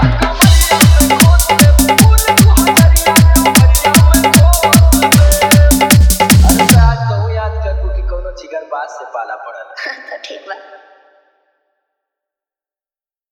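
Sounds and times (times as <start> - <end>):
dholki bass dance mix: 0.0 - 8.4.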